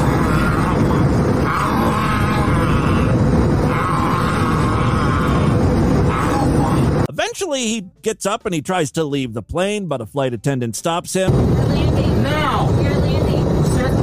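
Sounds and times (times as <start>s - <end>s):
man growling while chewing a mask: 0.0s - 7.1s
speech: 7.5s - 13.7s.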